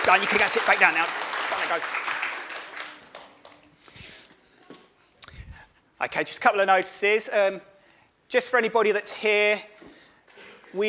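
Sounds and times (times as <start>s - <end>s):
audience applause: 0.0s - 3.6s
speech: 0.1s - 2.3s, 6.0s - 7.7s, 8.3s - 9.9s.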